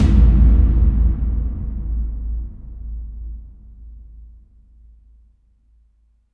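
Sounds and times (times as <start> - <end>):
cavern tub impacts, hits and booms: 0.0 - 5.0.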